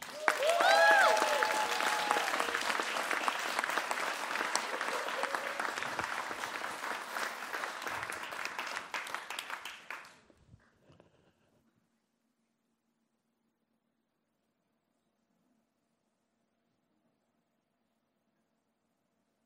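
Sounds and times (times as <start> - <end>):
crowd whooping and cheering: 0.0 - 6.7
crowd applauding: 0.0 - 10.3.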